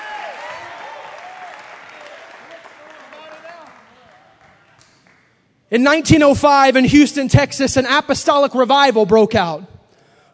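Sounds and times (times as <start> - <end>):
congregation clapping during a church service: 0.0 - 5.4
speech: 5.7 - 9.7.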